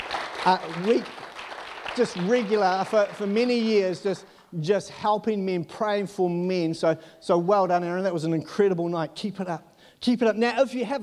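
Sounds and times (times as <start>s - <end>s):
crowd clapping: 0.0s - 4.1s
speech: 0.4s - 1.2s, 2.0s - 11.0s.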